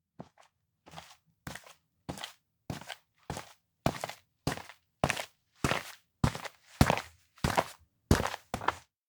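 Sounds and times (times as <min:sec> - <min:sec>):
footsteps on an outdoor observatory walk: 0:00.2 - 0:08.8.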